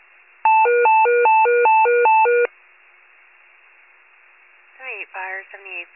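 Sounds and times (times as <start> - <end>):
fire pager alert: 0.5 - 2.5.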